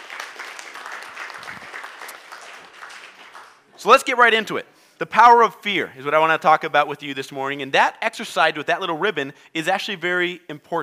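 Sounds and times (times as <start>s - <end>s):
audience applause: 0.0s - 3.6s
speech: 3.8s - 10.8s.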